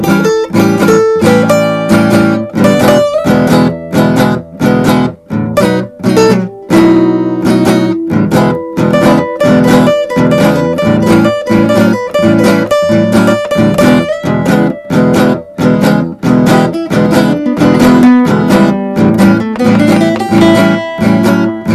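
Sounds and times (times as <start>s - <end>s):
blues played on two guitars: 0.0s - 21.7s.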